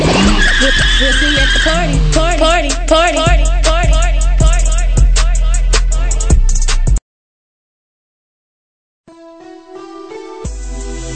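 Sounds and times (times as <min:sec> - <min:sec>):
tires squealing: 0:00.0 - 0:02.7
car revving hard and accelerating: 0:00.0 - 0:06.0
speech: 0:01.0 - 0:04.0.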